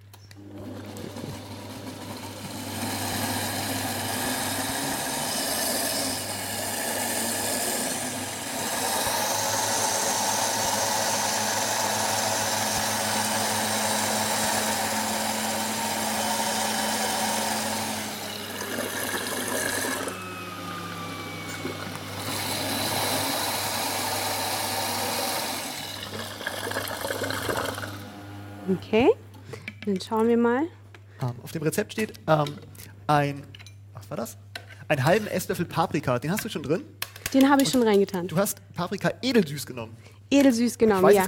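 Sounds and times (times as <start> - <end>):
kitchen blender running: 0.4 - 28.9
speech: 28.9 - 29.2, 29.9 - 33.5, 34.1 - 41.2.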